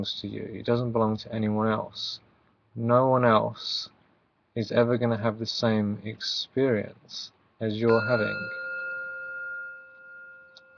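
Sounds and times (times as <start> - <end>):
speech: 0.0 - 4.0, 4.6 - 8.6
meditation timer chime: 7.9 - 10.7.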